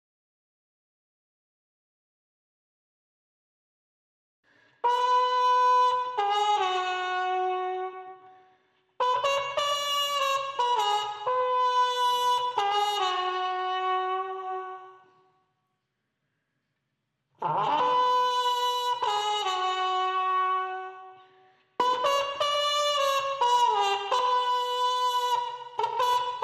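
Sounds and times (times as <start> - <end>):
trumpets: 4.8 - 15.3, 17.4 - 26.4.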